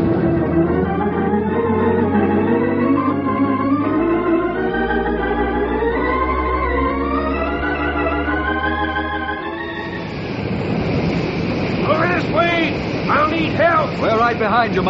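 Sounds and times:
swelling music with rising tones: 0.0 - 12.8
oil gusher erupting from the ground: 10.2 - 14.8
speech: 14.7 - 14.8.

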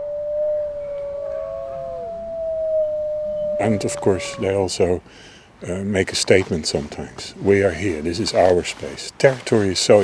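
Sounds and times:
wolves howling together at night: 0.0 - 4.8
speech: 3.6 - 10.0.

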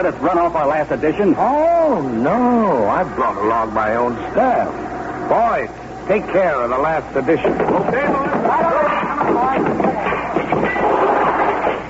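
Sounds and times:
speech: 0.0 - 10.4
indistinct voices: 1.2 - 11.8
printing presses being smashed: 7.4 - 11.8.

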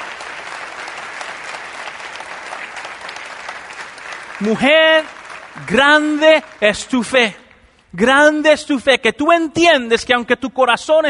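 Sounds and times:
audience applauding: 0.0 - 7.4
speech: 4.4 - 11.0.

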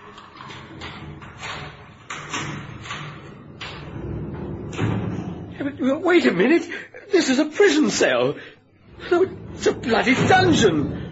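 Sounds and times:
steel cell door sliding shut and locking: 0.0 - 5.6, 8.9 - 11.1
speech: 5.6 - 11.0.

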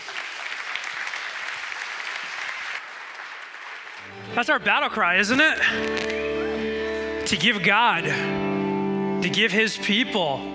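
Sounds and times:
applause from a large crowd: 0.0 - 7.2
speech: 4.1 - 6.2, 7.3 - 8.4, 9.2 - 10.5.

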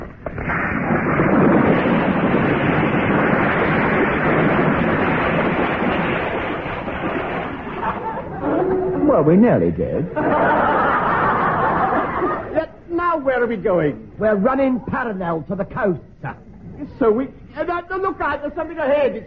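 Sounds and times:
storm wind: 0.1 - 8.5
crashing waves: 0.3 - 8.3
laughter: 7.8 - 9.3, 9.9 - 12.6
speech: 9.3 - 10.5, 13.3 - 19.2.

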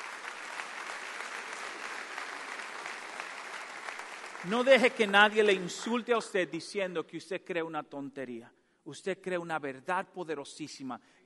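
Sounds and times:
audience applause: 0.0 - 6.0
speech: 4.4 - 11.2.

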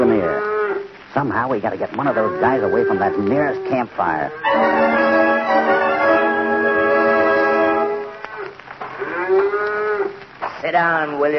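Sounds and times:
speech: 1.2 - 5.1, 10.7 - 11.3
cattle mooing: 1.9 - 10.2.

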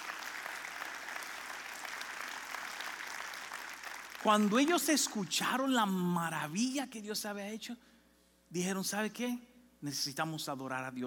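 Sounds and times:
audience applause: 0.0 - 5.2
speech: 4.2 - 7.9, 8.5 - 11.0.

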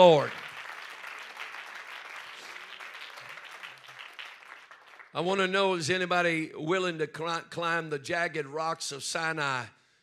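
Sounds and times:
speech: 0.0 - 0.4, 5.2 - 9.8
audience clapping hands: 0.0 - 5.5.

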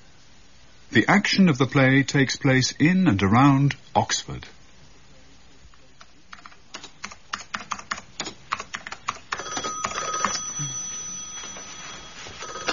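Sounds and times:
speech: 0.9 - 4.6
keyboard typing: 6.0 - 10.5
office telephone ringing: 9.3 - 12.7.

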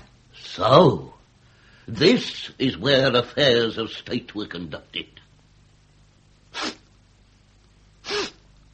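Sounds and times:
speech: 0.5 - 1.1, 1.9 - 5.2
person sniffing: 6.5 - 6.9, 8.0 - 8.5.

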